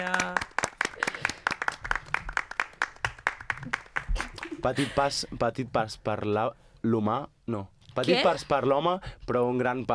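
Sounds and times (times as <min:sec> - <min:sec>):
applause: 0:00.0 - 0:04.6
speech: 0:04.6 - 0:09.9.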